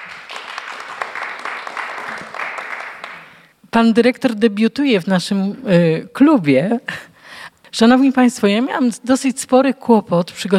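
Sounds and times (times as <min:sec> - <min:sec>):
audience applause: 0:00.0 - 0:03.4
speech: 0:03.7 - 0:07.1, 0:07.8 - 0:10.5.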